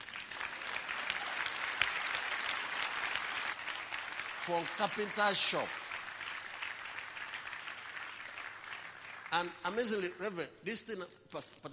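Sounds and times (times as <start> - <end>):
crowd applauding: 0.0 - 10.4
speech: 4.5 - 5.8, 9.3 - 11.7.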